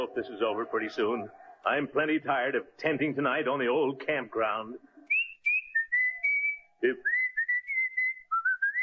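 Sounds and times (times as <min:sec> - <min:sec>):
speech: 0:00.1 - 0:04.9, 0:06.8 - 0:07.1
person whistling a tune: 0:05.1 - 0:08.8.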